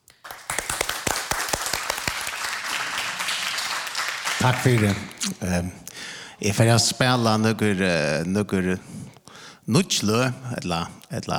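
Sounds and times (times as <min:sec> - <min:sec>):
audience applause: 0:00.2 - 0:05.2
speech: 0:04.4 - 0:05.8, 0:06.4 - 0:11.3.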